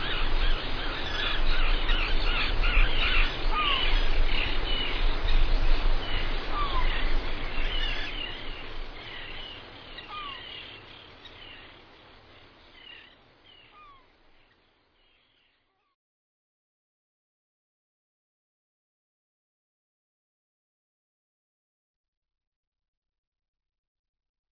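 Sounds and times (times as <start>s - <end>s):
seabirds: 0.0s - 16.0s.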